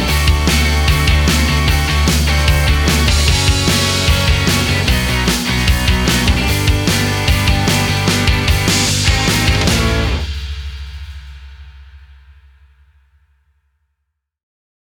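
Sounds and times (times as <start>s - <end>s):
Britpop music: 0.0s - 10.3s.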